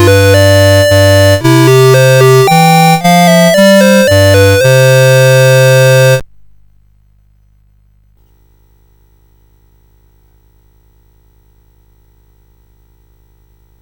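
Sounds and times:
minuet on CSG8580R5 sound chip: 0.0 - 6.2.

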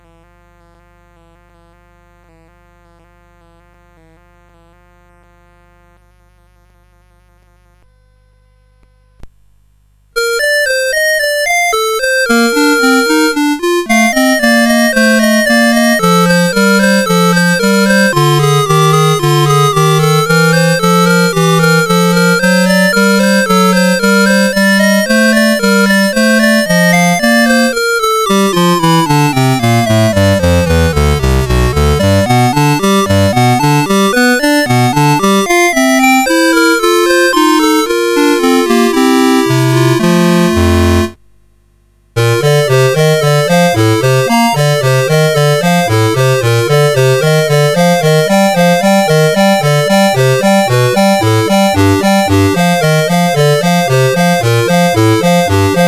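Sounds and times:
classical prelude and fugue in B flat major: 10.2 - 41.2, 42.2 - 55.8.

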